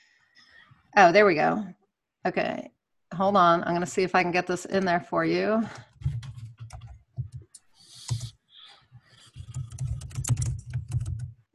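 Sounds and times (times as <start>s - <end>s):
speech: 0.9s - 5.9s
typing on a computer keyboard: 5.8s - 11.5s.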